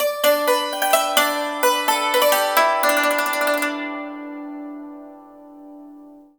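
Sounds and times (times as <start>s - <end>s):
music: 0.0s - 6.3s.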